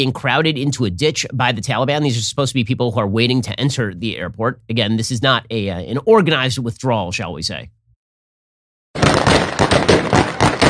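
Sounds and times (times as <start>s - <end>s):
speech: 0.0s - 7.8s
gunfire outside an airport: 9.0s - 10.6s.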